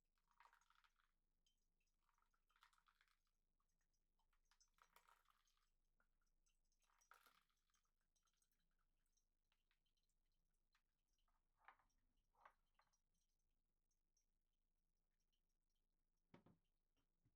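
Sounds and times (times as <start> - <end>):
coffee brewing: 0.0 - 13.0.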